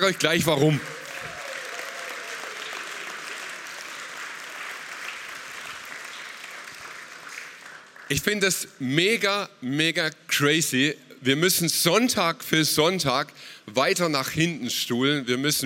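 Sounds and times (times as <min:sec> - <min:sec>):
speech: 0:00.0 - 0:01.0, 0:08.1 - 0:15.6
audience applause: 0:00.0 - 0:08.2.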